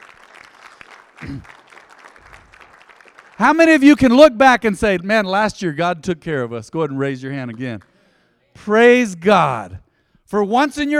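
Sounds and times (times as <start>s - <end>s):
audience clapping: 0.0s - 4.2s, 7.5s - 8.0s
speech: 1.2s - 1.6s, 3.4s - 7.9s, 8.6s - 10.9s.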